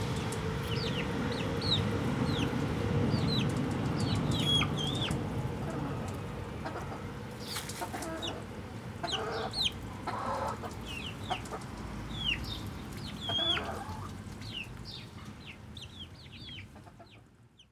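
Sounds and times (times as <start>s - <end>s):
chicken chicks peeping: 0.2s - 8.5s, 9.0s - 17.2s
hen clucking: 4.3s - 11.7s, 13.2s - 14.1s.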